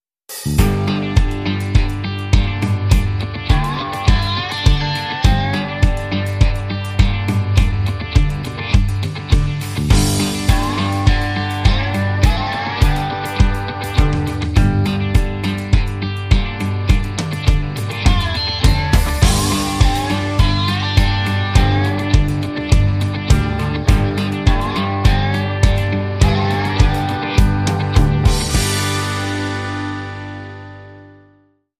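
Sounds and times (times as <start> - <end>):
country blues music: 0.6 - 31.2.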